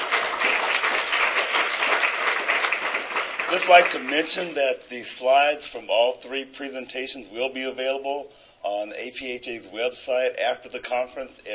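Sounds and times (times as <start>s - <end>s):
audience applause: 0.0s - 4.5s
speech: 3.5s - 11.5s.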